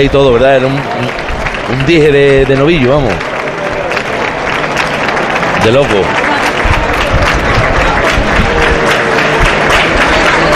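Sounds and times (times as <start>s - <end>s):
speech: 0.0s - 3.4s, 5.6s - 6.2s
large crowd in a bullring clapping: 0.0s - 10.5s
murmur of voices: 0.0s - 10.5s.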